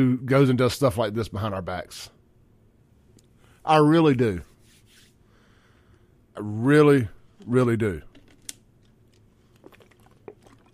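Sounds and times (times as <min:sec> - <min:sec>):
speech: 0:00.0 - 0:02.2, 0:03.6 - 0:04.5, 0:06.4 - 0:08.1
drinking from a water bottle: 0:09.5 - 0:10.7.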